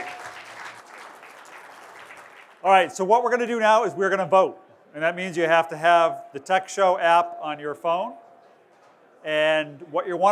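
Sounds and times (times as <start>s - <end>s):
audience applause: 0.0s - 2.6s
speech: 2.6s - 8.2s, 9.2s - 10.3s.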